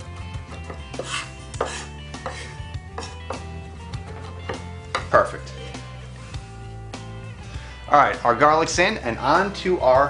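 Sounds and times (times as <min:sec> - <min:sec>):
knife mincing garlic on a cutting board: 0:00.5 - 0:03.5, 0:04.1 - 0:05.1
speech: 0:08.0 - 0:10.0.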